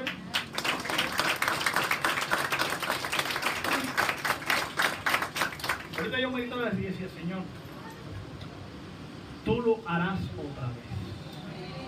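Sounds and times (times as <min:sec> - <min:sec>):
loud crowd applause: 0:00.0 - 0:06.2
speech: 0:06.0 - 0:07.6, 0:09.6 - 0:11.2.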